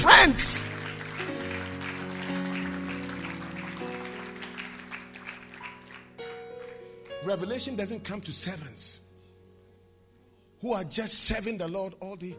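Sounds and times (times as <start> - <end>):
audience clapping: 0.0 - 7.3
organ-like keyboard chords: 0.0 - 10.6
speech: 7.2 - 9.0, 10.6 - 12.3.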